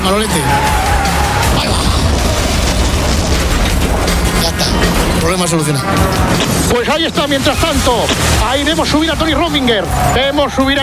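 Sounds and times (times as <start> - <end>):
speech: 0.0 - 0.8, 4.4 - 10.8
explosion of an old vehicle: 1.4 - 8.9.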